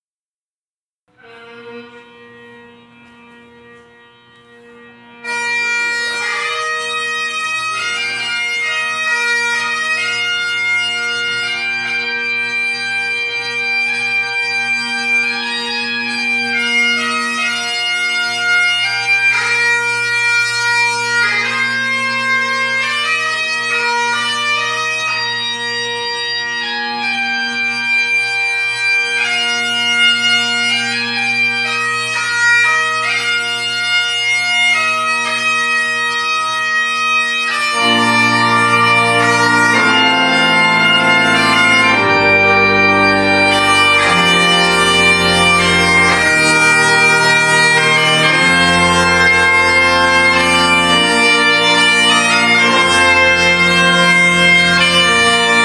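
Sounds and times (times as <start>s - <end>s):
bagpipes: 1.1s - 55.6s.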